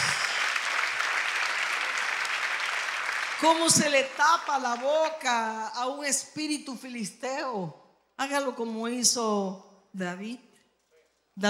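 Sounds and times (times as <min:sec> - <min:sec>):
congregation clapping during a Spanish-language church service: 0:00.0 - 0:05.6
speech: 0:03.4 - 0:10.5.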